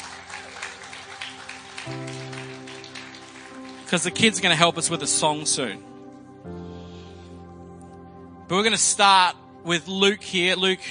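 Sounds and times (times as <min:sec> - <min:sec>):
round of applause for kids: 0:00.0 - 0:04.8
speech: 0:03.9 - 0:05.9, 0:08.5 - 0:10.8.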